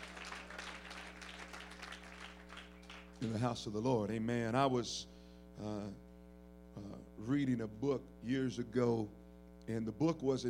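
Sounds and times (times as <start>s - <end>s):
audience clapping hands: 0.0s - 3.4s
speech: 3.2s - 6.0s, 6.8s - 10.4s.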